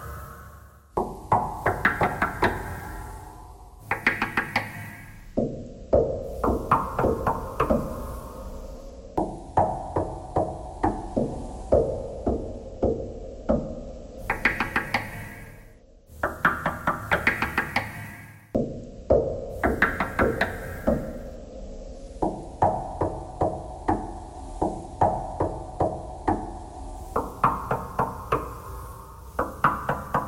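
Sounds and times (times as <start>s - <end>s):
knocking thread noise: 1.0s - 2.8s, 3.8s - 8.0s, 9.2s - 15.4s, 16.2s - 18.1s, 19.1s - 21.2s, 22.2s - 28.6s, 29.4s - 30.2s.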